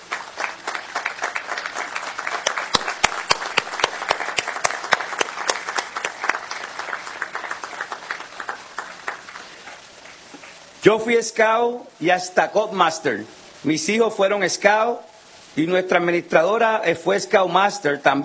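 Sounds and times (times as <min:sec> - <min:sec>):
audience applause: 0:00.0 - 0:10.7
speech: 0:10.8 - 0:18.2.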